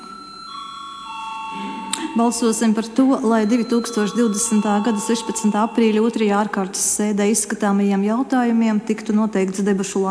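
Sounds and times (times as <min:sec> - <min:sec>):
parliament voting bell ringing: 0:00.0 - 0:07.0
speech: 0:02.2 - 0:10.1.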